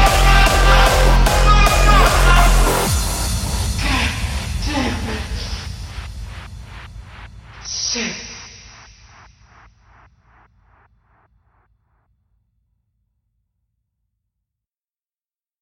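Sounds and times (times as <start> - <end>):
hardstyle dance music: 0.0 - 10.8.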